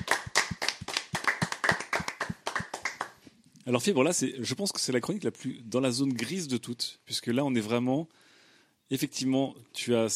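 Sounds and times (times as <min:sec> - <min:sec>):
audience applause: 0:00.0 - 0:03.2
speech: 0:03.7 - 0:08.3, 0:08.9 - 0:10.1.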